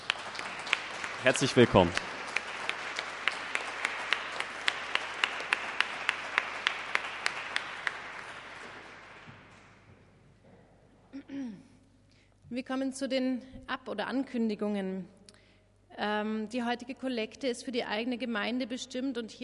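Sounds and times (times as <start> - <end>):
applause in a church welcoming confirmation candidates: 0.0 - 9.8
speech: 1.2 - 2.1, 12.6 - 15.2, 16.0 - 19.4.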